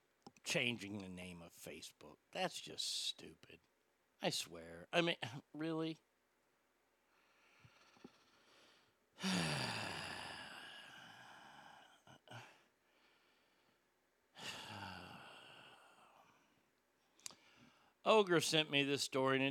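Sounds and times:
speech: 0.5 - 6.1, 9.2 - 9.6, 18.1 - 19.4
heavy breathing: 7.1 - 13.8, 14.4 - 16.6, 17.2 - 18.0.

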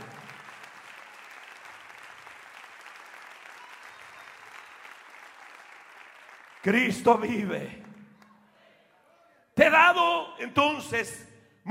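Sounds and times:
audience applause: 0.0 - 8.4
speech: 6.6 - 7.8, 9.6 - 11.6.

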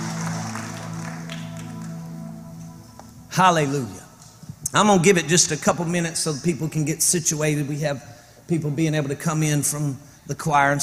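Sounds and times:
audience applause: 0.0 - 2.5
speech: 3.4 - 4.0, 4.7 - 10.8.

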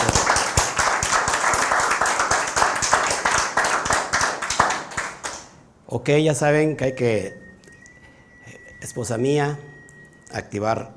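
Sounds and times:
audience applause: 0.0 - 5.4
speech: 5.9 - 7.4, 9.0 - 9.7, 10.3 - 10.9.

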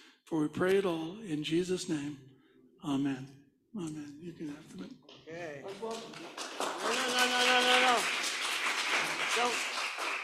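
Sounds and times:
speech: 0.3 - 8.2, 9.4 - 9.7
audience applause: 5.6 - 10.2.

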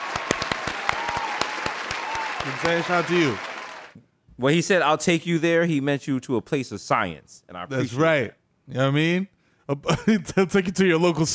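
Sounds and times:
applause: 0.0 - 4.0
speech: 2.4 - 11.3.

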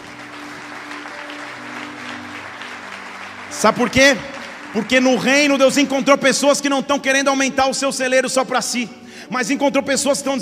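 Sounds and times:
audience applauding: 0.0 - 6.1
speech: 3.5 - 10.4.

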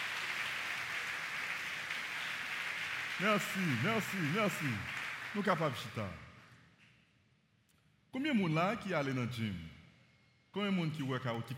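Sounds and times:
audience applause: 0.0 - 6.1
speech: 3.2 - 6.3, 8.1 - 9.8, 10.6 - 11.5.

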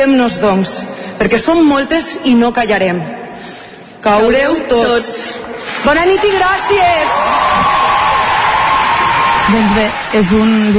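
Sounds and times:
speech: 0.0 - 3.2, 4.0 - 7.6, 9.5 - 10.7
crowd cheering with shouts and whoops: 6.3 - 10.6
audience applause: 6.6 - 10.7.

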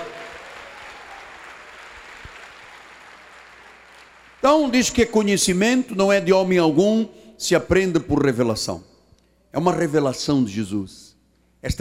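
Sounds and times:
audience applause: 0.0 - 4.7
speech: 4.4 - 8.9, 9.5 - 11.8.

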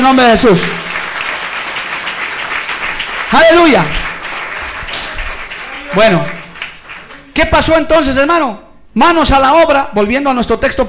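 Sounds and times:
speech: 0.1 - 0.9, 3.3 - 4.0, 5.9 - 6.4, 7.4 - 10.8
audience applause: 0.8 - 7.4.

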